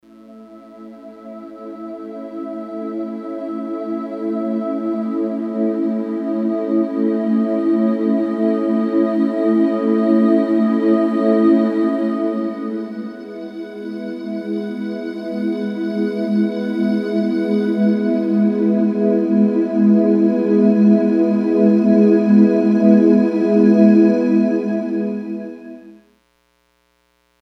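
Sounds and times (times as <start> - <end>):
Ozone Choir synth: 0.2 - 25.9.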